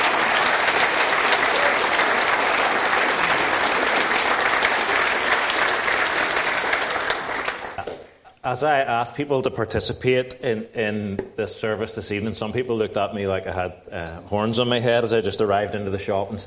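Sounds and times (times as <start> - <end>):
audience round of applause: 0.0 - 8.2
speech: 8.5 - 16.4.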